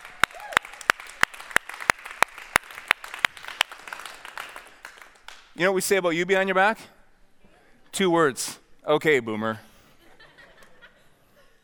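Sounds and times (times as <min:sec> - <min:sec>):
slow clapping: 0:00.0 - 0:05.6
speech: 0:05.6 - 0:07.0, 0:08.0 - 0:09.7
laughter: 0:09.9 - 0:11.6.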